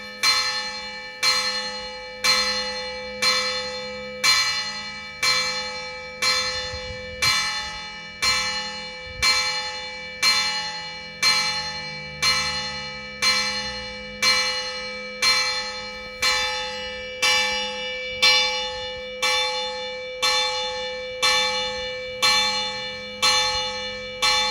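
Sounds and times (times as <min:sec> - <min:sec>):
funeral bells tolling: 0:00.0 - 0:24.4.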